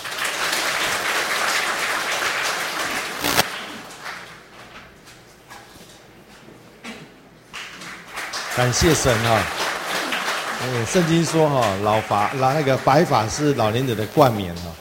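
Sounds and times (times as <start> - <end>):
audience applause: 0.0 - 4.4, 7.8 - 13.9
speech: 8.6 - 9.6, 10.6 - 14.8.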